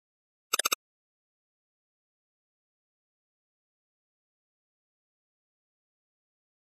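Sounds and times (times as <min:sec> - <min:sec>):
flash gear sound effect: 0:00.6 - 0:00.8.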